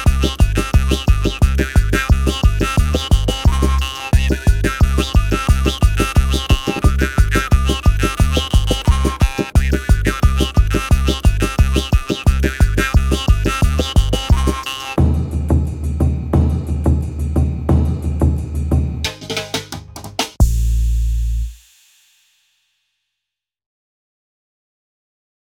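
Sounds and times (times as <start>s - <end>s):
jaw harp: 0.0s - 15.0s
bass: 0.0s - 21.6s.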